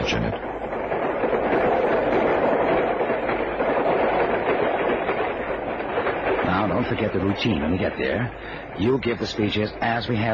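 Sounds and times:
train travelling on rails: 0:00.0 - 0:10.3
speech: 0:00.1 - 0:00.5, 0:06.9 - 0:10.3.

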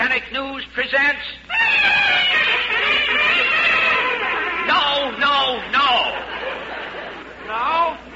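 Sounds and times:
speech: 0:00.1 - 0:02.0
newsreel fanfare played on two trumpets: 0:01.5 - 0:04.9
laughter: 0:01.5 - 0:08.1.

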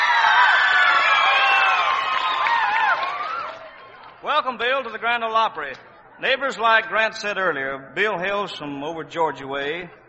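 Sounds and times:
whoops: 0:00.0 - 0:03.7
audience clapping at the Grand Ole Opry: 0:01.0 - 0:05.1
speech: 0:04.4 - 0:10.0.

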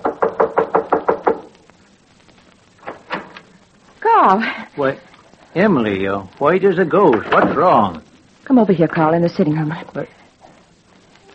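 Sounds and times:
knock on a door: 0:00.0 - 0:01.5
speech: 0:04.2 - 0:10.2.

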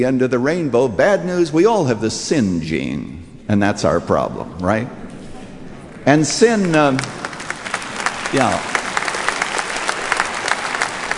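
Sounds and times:
speech: 0:00.0 - 0:05.0, 0:06.0 - 0:07.2, 0:08.3 - 0:08.7
audience applause: 0:06.3 - 0:11.1.

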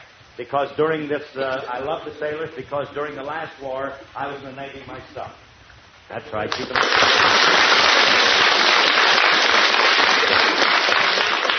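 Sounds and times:
speech: 0:00.4 - 0:05.4, 0:06.1 - 0:07.6
audience applause: 0:06.5 - 0:11.5.

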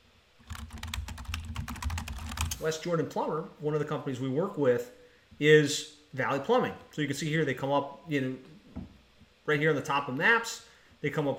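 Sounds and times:
typing on a computer keyboard entering a search query: 0:00.4 - 0:02.6
speech: 0:02.6 - 0:08.9, 0:09.5 - 0:11.3.

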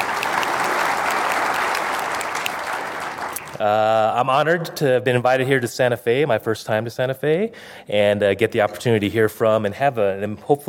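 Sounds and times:
audience applause for the Lannan Foundation at an evening event in Santa Fe: 0:00.0 - 0:03.6
speech: 0:03.6 - 0:10.6.

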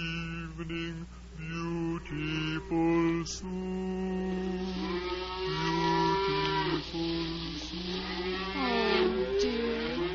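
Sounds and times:
speech: 0:00.6 - 0:04.5
cows mooing: 0:04.0 - 0:10.1.

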